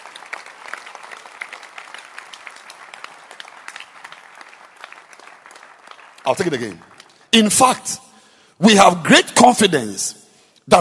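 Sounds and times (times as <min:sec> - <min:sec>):
audience clapping hands: 0:00.0 - 0:07.9
speech: 0:06.3 - 0:08.0, 0:08.6 - 0:10.7.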